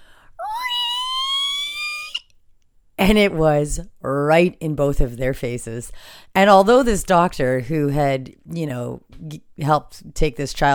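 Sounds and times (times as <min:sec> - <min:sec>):
voice imitating a loud squeaky fart: 0:00.4 - 0:02.3
speech: 0:03.0 - 0:10.7.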